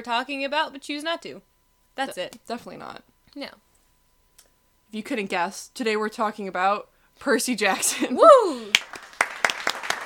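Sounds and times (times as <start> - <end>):
speech: 0.0 - 3.7, 4.9 - 9.0
applause: 8.7 - 10.0.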